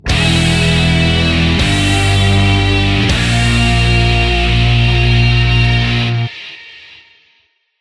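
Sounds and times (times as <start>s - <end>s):
boss battle intro game music: 0.0s - 6.3s.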